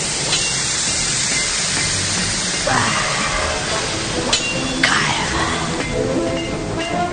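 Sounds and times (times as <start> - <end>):
hot forged metal quenched in cold water: 0.0 - 5.8
rising whines and crackles: 2.2 - 6.4.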